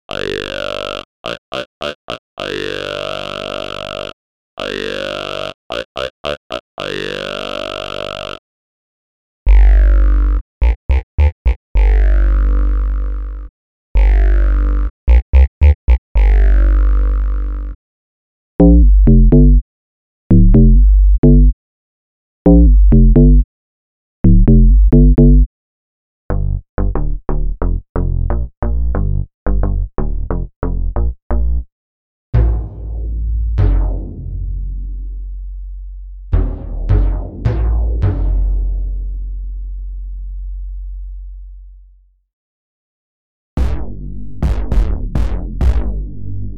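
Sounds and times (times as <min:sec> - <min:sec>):
special bass sounds: 0:09.5 - 0:17.8, 0:18.6 - 0:19.6, 0:20.3 - 0:21.6, 0:22.5 - 0:23.4, 0:24.2 - 0:25.5, 0:26.3 - 0:31.7, 0:32.4 - 0:41.9, 0:43.6 - 0:46.5.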